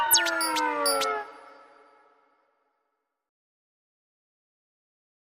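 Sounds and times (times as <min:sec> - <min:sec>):
nursery rhyme tune: 0:00.1 - 0:02.0.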